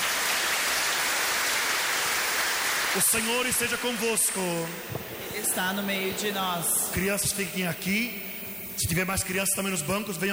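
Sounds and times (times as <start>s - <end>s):
applause during a church service: 0.0s - 4.4s
speech: 3.0s - 10.3s.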